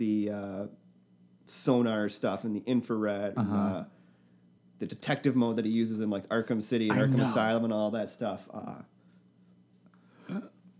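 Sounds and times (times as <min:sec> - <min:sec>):
speech: 0:00.0 - 0:00.8, 0:01.5 - 0:04.0, 0:04.8 - 0:08.9, 0:10.3 - 0:10.5
person burping: 0:03.4 - 0:03.8, 0:06.9 - 0:07.5.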